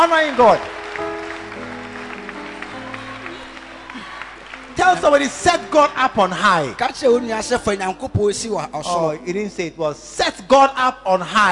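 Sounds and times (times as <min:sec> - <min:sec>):
speech: 0:00.0 - 0:00.8, 0:04.8 - 0:11.4
audience clapping: 0:00.0 - 0:07.7.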